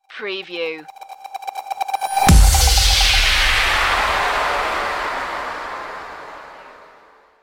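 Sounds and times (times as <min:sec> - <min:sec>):
musical stinger: 0:02.0 - 0:07.2.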